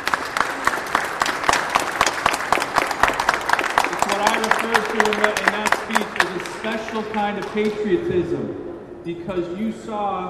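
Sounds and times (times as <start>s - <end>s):
round of applause from audience: 0.0s - 7.8s
speech: 4.4s - 10.2s.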